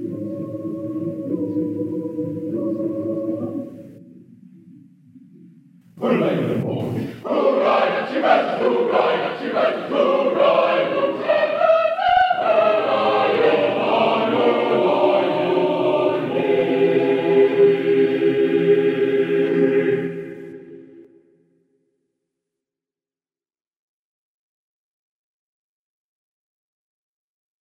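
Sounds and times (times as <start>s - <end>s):
choir singing: 0.0s - 4.1s, 6.0s - 21.2s.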